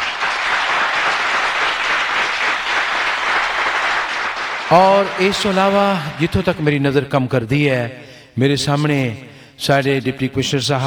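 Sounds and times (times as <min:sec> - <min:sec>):
audience applause: 0:00.0 - 0:06.6
speech: 0:04.7 - 0:10.8.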